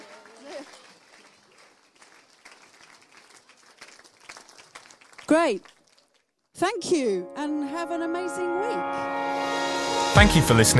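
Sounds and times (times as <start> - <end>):
audience clapping in a large room: 0.0 - 6.4
speech: 5.3 - 5.8, 6.6 - 9.2, 10.1 - 10.7.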